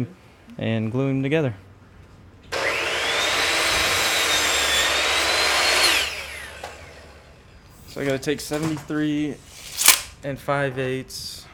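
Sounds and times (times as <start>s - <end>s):
speech: 0.0s - 1.6s, 8.0s - 9.5s, 10.2s - 11.5s
miter saw cutting wood boards to length: 2.5s - 7.3s, 9.4s - 10.1s.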